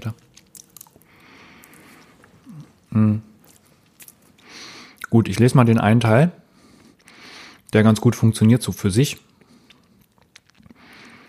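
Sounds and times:
speech: 0:00.0 - 0:00.3, 0:02.9 - 0:03.3, 0:05.1 - 0:06.4, 0:07.7 - 0:09.3
chewing food: 0:00.0 - 0:05.1, 0:09.2 - 0:11.2.

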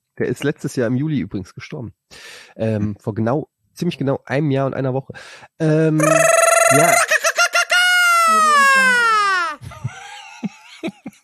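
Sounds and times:
speech: 0:00.2 - 0:07.1
Mexican mariachi shout: 0:06.0 - 0:09.6
laughter: 0:06.0 - 0:11.2.

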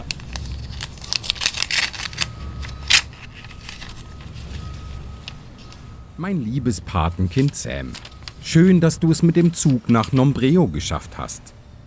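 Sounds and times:
paper envelope being torn open: 0:00.0 - 0:04.4, 0:07.3 - 0:08.5
speech: 0:06.2 - 0:11.6.

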